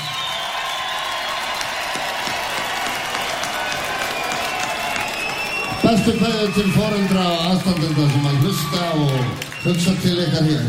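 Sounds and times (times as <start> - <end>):
audience clapping at a community gathering in Iceland: 0.0 - 10.6
speech: 5.9 - 10.6.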